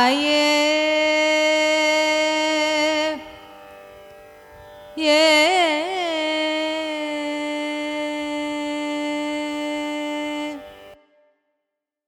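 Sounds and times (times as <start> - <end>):
Carnatic raga music: 0.0 - 12.0.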